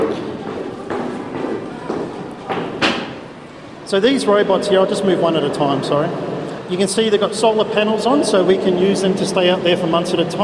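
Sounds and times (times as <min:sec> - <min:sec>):
footsteps going down stairs to a university basement swimming pool in Brisbane: 0:00.0 - 0:03.4
speech: 0:03.9 - 0:10.4.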